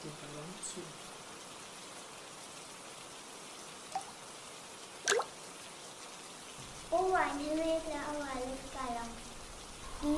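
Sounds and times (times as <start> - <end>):
speech: 0.0 - 1.1, 6.9 - 9.2, 10.0 - 10.1
faint hiss: 0.0 - 10.1
raindrops dripping: 0.0 - 10.1.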